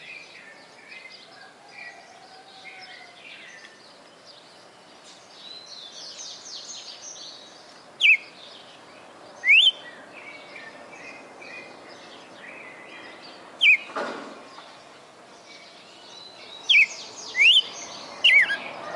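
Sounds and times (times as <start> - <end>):
female red-cowled cardinal singing in Fortaleza-CE: 8.0 - 8.3, 9.4 - 9.8, 13.6 - 13.9, 16.2 - 18.7.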